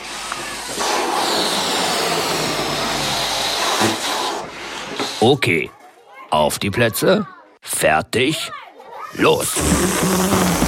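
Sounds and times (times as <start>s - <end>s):
released balloon whizzing through the air: 0.0s - 5.2s, 9.6s - 10.6s
speech: 5.2s - 10.6s.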